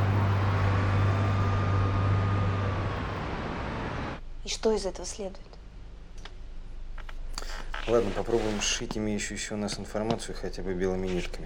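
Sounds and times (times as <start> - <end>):
Zhiguli cars driving on a city road: 0.0 - 4.2
speech: 4.4 - 5.5, 7.9 - 11.4.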